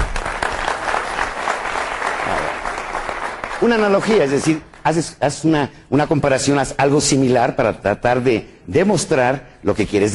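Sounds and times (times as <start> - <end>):
crowd clapping: 0.0 - 5.2
speech: 3.6 - 10.1.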